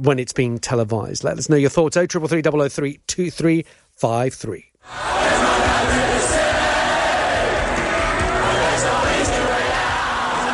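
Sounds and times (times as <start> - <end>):
speech: 0.0 - 6.4
crowd cheering at a 2009 stadium concert at Murrayfield Stadium in Edinburgh: 4.9 - 10.5.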